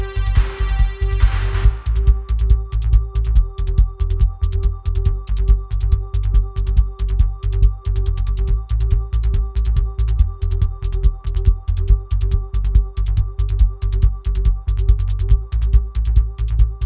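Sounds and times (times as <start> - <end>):
Moog synthesizer jam: 0.0 - 16.7.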